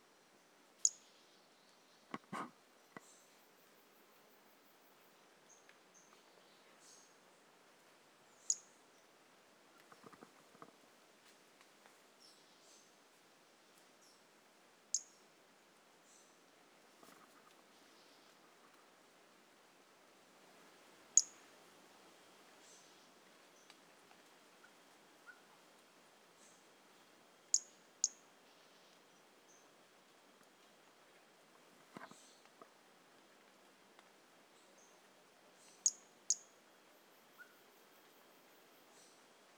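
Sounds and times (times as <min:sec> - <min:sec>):
background hiss: 0:00.0 - 0:39.5
pumpkin toadlet chirping: 0:08.5 - 0:08.7, 0:21.2 - 0:21.4, 0:35.8 - 0:36.5.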